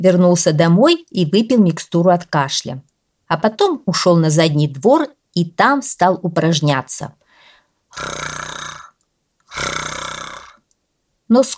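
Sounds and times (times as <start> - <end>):
speech: 0.0 - 7.2, 8.0 - 8.9, 9.6 - 10.3, 11.3 - 11.5
quiet human imitation of a lion growl: 7.9 - 10.6.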